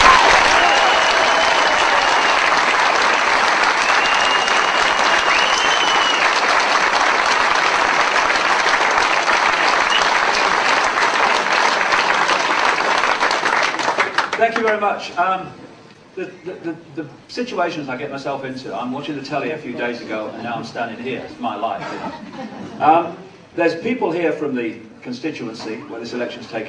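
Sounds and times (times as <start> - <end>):
audience applause welcoming a speaker at an election gathering: 0.0 - 14.8
speech: 14.7 - 26.6
laughter: 21.8 - 23.0.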